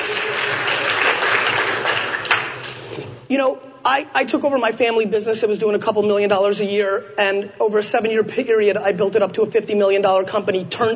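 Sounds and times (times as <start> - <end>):
crowd applause: 0.0 - 3.1
speech: 3.3 - 10.9.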